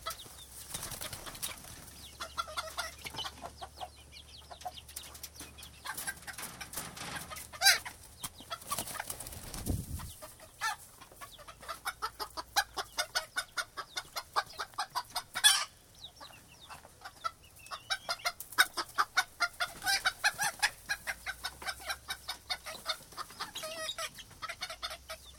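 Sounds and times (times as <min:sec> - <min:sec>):
chickens clucking: 0:00.0 - 0:25.3
chicken squawks: 0:07.3 - 0:15.8, 0:17.0 - 0:25.3.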